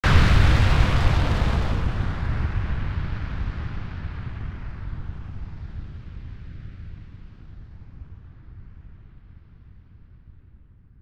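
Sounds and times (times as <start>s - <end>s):
explosion: 0.0s - 5.4s.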